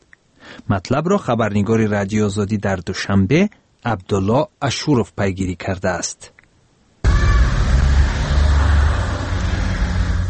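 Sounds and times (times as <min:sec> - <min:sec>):
speech: 0:00.7 - 0:06.3
road traffic of official cars driving out: 0:07.0 - 0:10.2.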